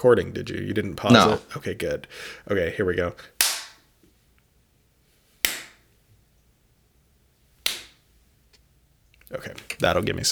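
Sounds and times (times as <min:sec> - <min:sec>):
speech: 0:00.0 - 0:03.4, 0:09.3 - 0:10.2
single hand clap for video sync: 0:03.4 - 0:03.8, 0:05.4 - 0:05.8, 0:07.6 - 0:08.0.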